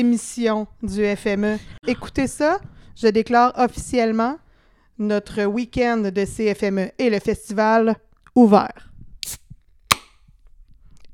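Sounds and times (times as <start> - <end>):
speech: 0.0 - 4.4, 5.0 - 9.4
beer bottle being opened: 9.2 - 10.2.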